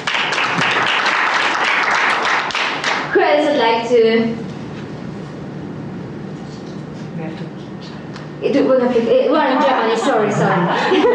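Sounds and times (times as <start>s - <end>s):
audience applause: 0.0s - 3.1s
speech: 3.6s - 4.5s, 8.4s - 11.1s
laughter: 9.3s - 11.1s.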